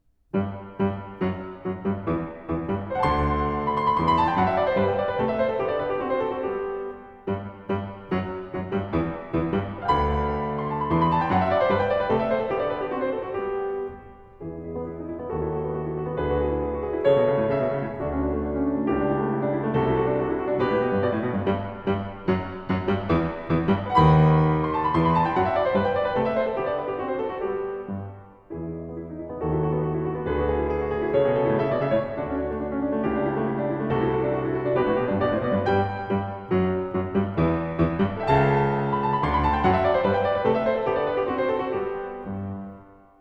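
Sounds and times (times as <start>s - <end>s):
classical variation in G major: 0.0s - 43.1s.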